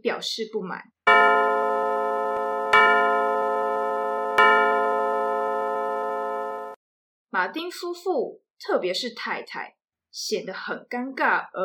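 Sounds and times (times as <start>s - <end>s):
speech: 0.1s - 1.0s, 7.3s - 11.6s
clock striking loudly in a domestic stage play scene: 1.1s - 6.8s.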